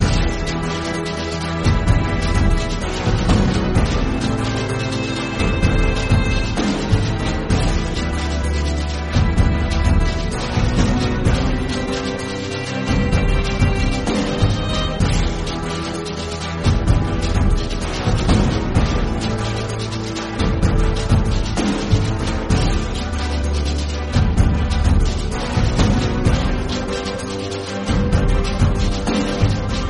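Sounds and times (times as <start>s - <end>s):
classical orchestral music: 0.0s - 29.8s.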